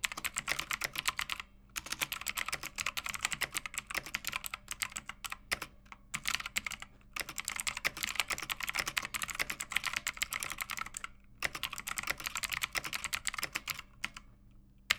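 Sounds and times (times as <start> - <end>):
clicky gaming keyboard typing: 0.0 - 14.3.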